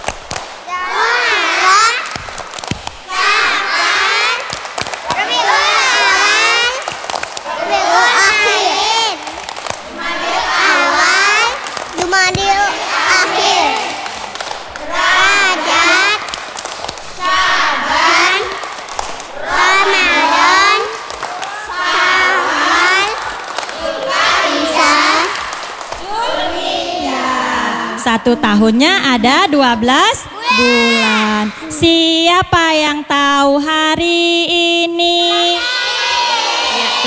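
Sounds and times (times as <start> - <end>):
clapping chant: 0.0 - 28.4
children chanting names of the Islamic months: 0.0 - 32.0, 35.3 - 37.0
speech: 28.2 - 35.5.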